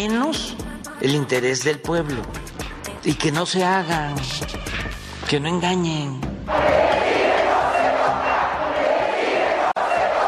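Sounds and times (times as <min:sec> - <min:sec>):
speech: 0:00.0 - 0:06.9
crowd chanting at a march in the Zócalo of Mexico City: 0:06.5 - 0:10.2.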